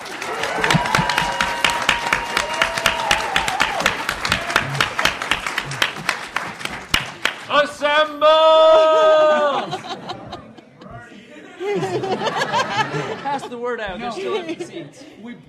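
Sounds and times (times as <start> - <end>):
audience applause for panelists: 0.0 - 8.1
laughter: 8.5 - 15.1.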